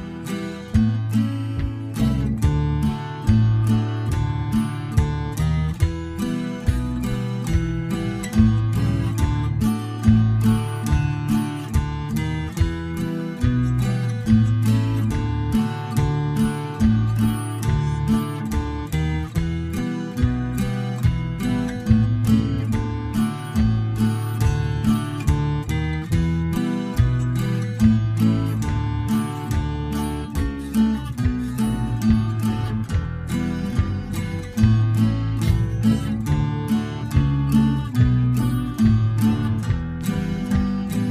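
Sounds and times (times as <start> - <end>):
banjo playing a slow reel: 0.0 - 41.0.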